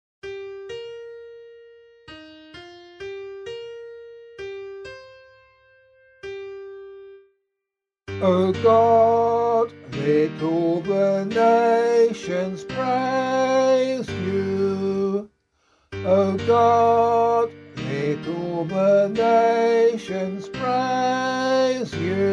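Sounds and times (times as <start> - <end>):
psalm singing: 8.2 - 15.3, 16.0 - 22.3.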